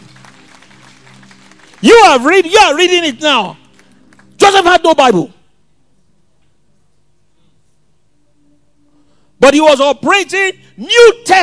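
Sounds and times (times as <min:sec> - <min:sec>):
audience clapping: 0:00.0 - 0:04.8
speech: 0:01.8 - 0:03.6, 0:04.4 - 0:05.4, 0:09.4 - 0:11.4.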